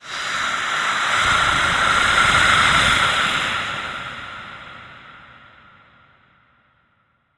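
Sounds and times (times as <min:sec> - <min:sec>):
scary voices: 0:00.0 - 0:05.6.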